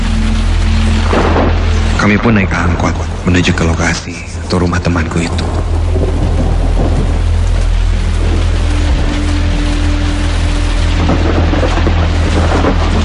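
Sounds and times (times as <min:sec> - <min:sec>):
deep low rumble: 0:00.0 - 0:13.0
heavy rain pouring down: 0:00.0 - 0:13.0
speech: 0:02.0 - 0:05.6.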